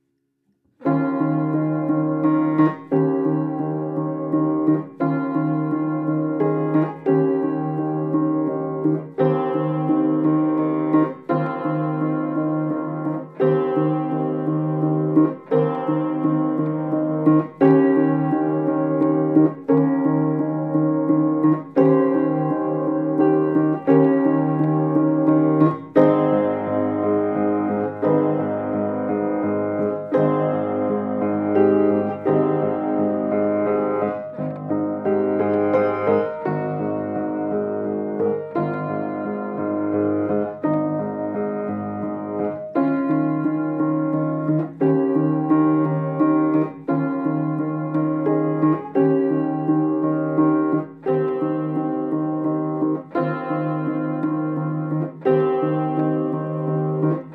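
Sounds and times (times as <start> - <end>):
piano song: 0.7 - 57.3.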